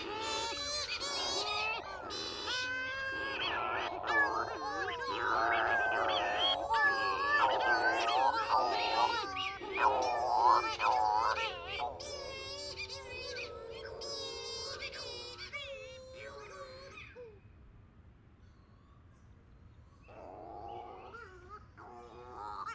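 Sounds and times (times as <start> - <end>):
Cape Verde Shearwater calling: 0.0 - 12.9.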